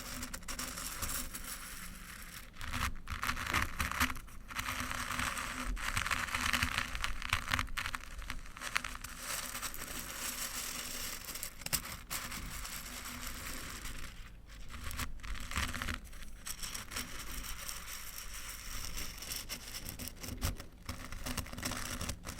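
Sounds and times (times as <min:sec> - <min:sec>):
crunchy stirring: 0:00.0 - 0:22.3.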